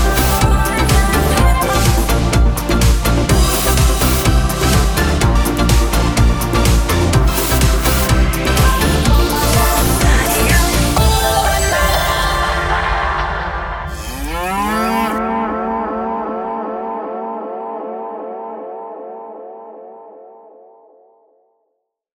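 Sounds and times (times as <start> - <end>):
show opener music: 0.0 - 16.6.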